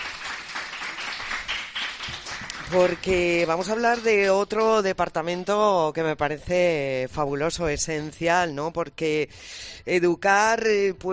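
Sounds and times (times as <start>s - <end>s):
group of children applauding: 0.0s - 4.8s
speech: 2.7s - 11.1s.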